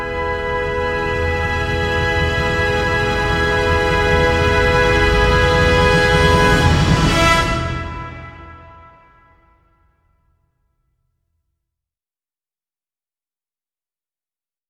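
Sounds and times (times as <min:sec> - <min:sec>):
epic movie trailer music: 0:00.0 - 0:09.1.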